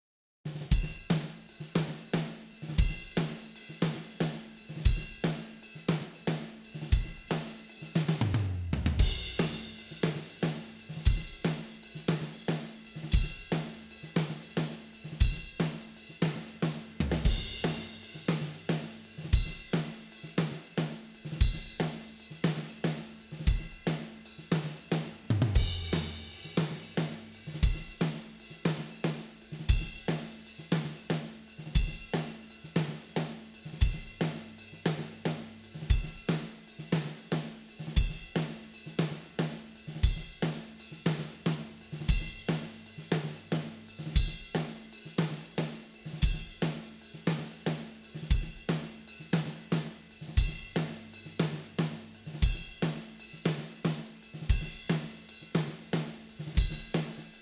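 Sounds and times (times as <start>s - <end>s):
drums: 0.5s - 57.4s.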